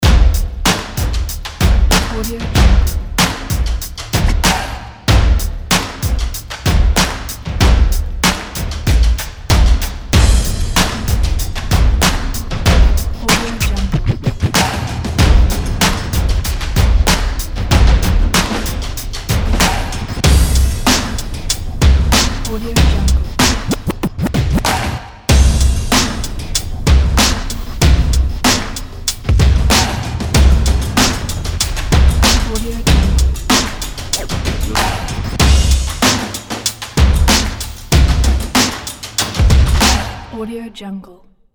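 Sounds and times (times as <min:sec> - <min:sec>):
hip hop music: 0:00.0 - 0:40.4.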